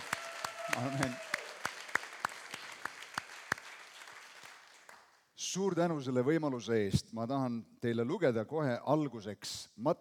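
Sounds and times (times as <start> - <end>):
audience applause: 0.0 - 5.0
speech: 0.8 - 1.2, 5.5 - 9.9.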